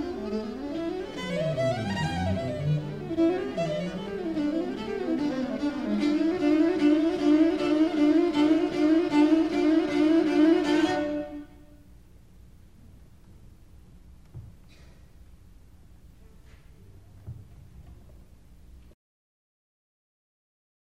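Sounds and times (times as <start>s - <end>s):
string chamber music: 0.0s - 11.6s.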